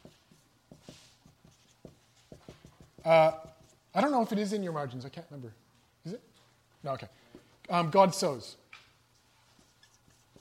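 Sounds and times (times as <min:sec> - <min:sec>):
pen writing on paper: 0:00.0 - 0:03.8, 0:09.6 - 0:10.4
speech: 0:03.0 - 0:08.6.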